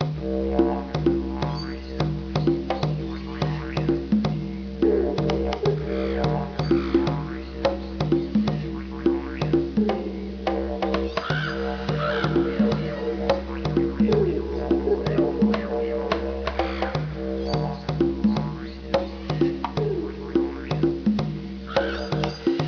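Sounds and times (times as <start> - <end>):
music: 0.0 - 22.6.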